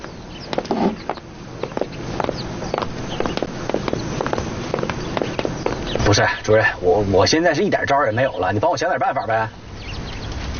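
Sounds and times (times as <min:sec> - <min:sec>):
footsteps of two people walking out: 0:00.0 - 0:06.1
speech: 0:06.1 - 0:09.6.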